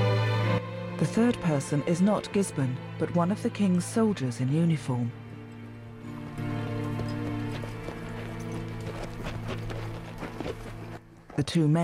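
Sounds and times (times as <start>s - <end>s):
speech: 1.0s - 5.2s, 11.4s - 11.8s
horse hooves clip-clopping as riders approach on horseback: 6.1s - 11.6s.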